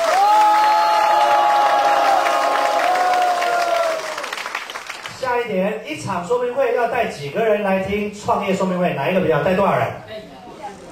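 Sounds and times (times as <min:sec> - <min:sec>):
audience applause: 0:00.0 - 0:05.2
speech: 0:05.5 - 0:10.2.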